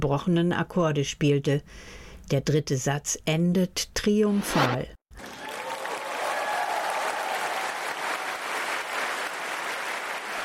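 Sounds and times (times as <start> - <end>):
speech: 0.0 - 5.4
concert audience applauding enthusiastically: 5.2 - 10.4.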